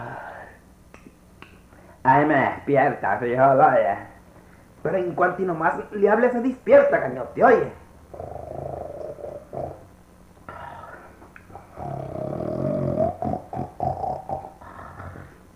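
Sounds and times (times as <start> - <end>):
speech: 2.0 - 4.1, 4.8 - 8.3
person snoring: 8.1 - 9.9, 10.5 - 15.4.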